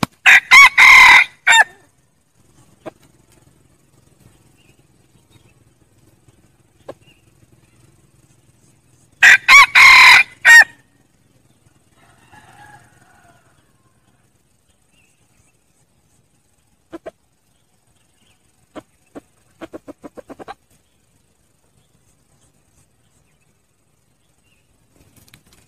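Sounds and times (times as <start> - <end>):
red junglefowl crowing: 0.2 - 1.9, 9.2 - 10.9, 11.8 - 14.2.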